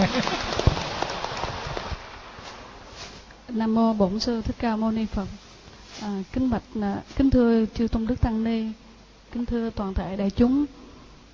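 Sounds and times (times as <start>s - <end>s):
crowd clapping: 0.0s - 2.0s
speech: 3.6s - 5.4s, 6.0s - 10.8s.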